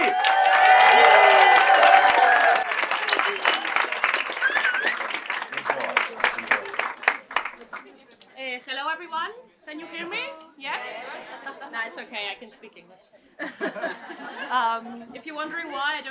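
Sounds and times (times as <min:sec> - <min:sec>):
crowd applauding and cheering: 0:00.0 - 0:07.9
laughter: 0:10.7 - 0:12.0, 0:13.4 - 0:15.0
speech: 0:14.8 - 0:16.1.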